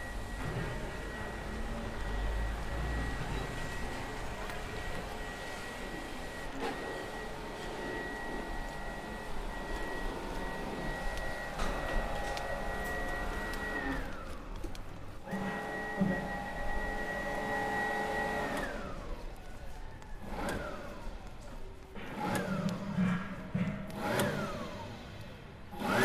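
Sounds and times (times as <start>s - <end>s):
siren in a town square: 0.0s - 14.4s, 15.2s - 22.7s
compressor in a town square: 0.0s - 26.0s
traffic in a town square: 0.0s - 26.0s.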